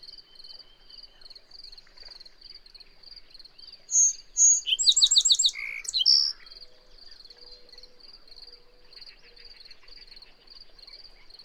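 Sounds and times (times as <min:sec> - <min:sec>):
bird whistled song: 0:03.9 - 0:06.6.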